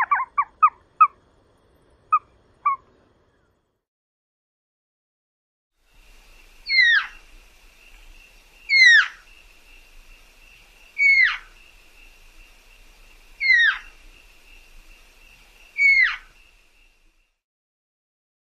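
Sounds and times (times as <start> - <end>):
Elf owl chatter in a desert in the USA: 0.0 - 1.2, 2.1 - 3.5, 6.4 - 16.5.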